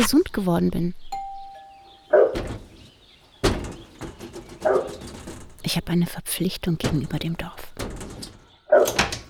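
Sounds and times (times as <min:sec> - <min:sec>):
speech: 0:00.0 - 0:01.2, 0:05.7 - 0:07.7
dog giving short gruff barks indoors: 0:08.7 - 0:09.0.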